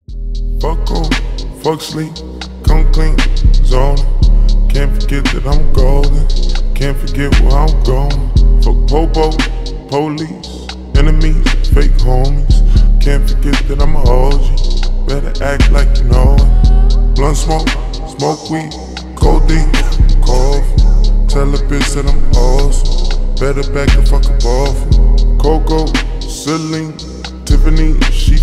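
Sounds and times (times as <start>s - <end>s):
slowed reverb music: 0.1s - 28.4s.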